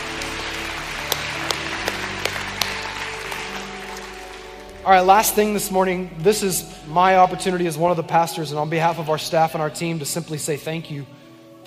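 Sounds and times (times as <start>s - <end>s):
church congregation clapping: 0.0s - 6.6s
speech: 4.8s - 11.6s.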